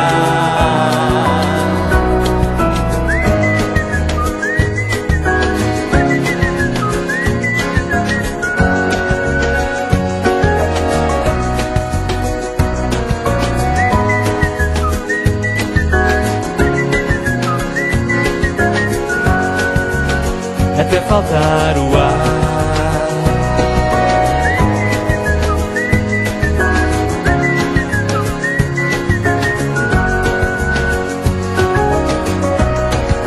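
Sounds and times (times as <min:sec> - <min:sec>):
whistling a melody: 0:00.0 - 0:33.2.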